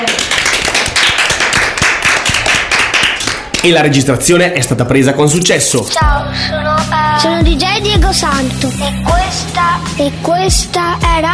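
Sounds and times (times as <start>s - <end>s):
crowd applause: 0.0s - 3.6s
speech: 3.6s - 11.3s.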